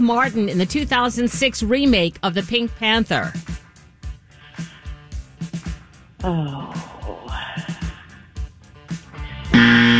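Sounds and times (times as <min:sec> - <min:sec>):
speech: 0:00.0 - 0:03.5, 0:06.2 - 0:06.9
vocal murmuring: 0:06.2 - 0:08.3
quiz show time-up buzzer: 0:09.5 - 0:09.9.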